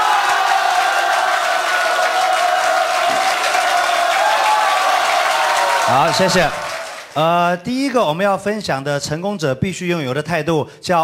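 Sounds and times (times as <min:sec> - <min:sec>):
audience applause: 0:00.0 - 0:07.3
crowd cheering: 0:00.0 - 0:07.3
speech: 0:05.9 - 0:06.6, 0:07.2 - 0:11.0.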